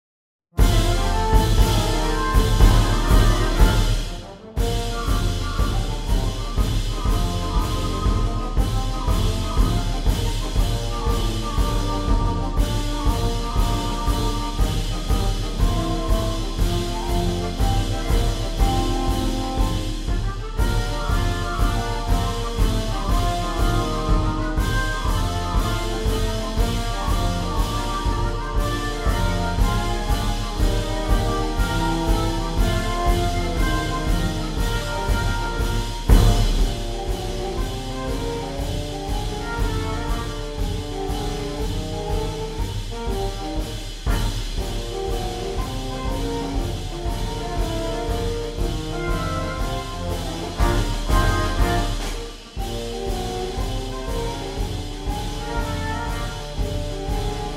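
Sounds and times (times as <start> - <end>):
trombones: 0.6 - 57.5.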